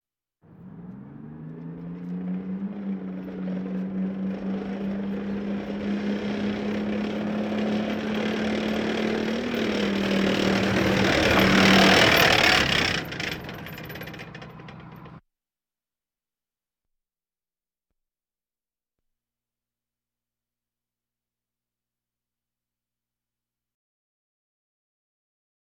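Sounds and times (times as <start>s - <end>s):
military vehicles: 0.4s - 15.2s.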